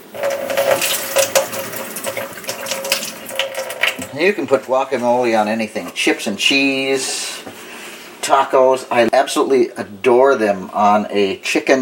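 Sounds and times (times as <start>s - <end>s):
hands rinsed under running tap water: 0.0s - 4.7s
speech: 4.2s - 7.3s, 8.3s - 11.7s.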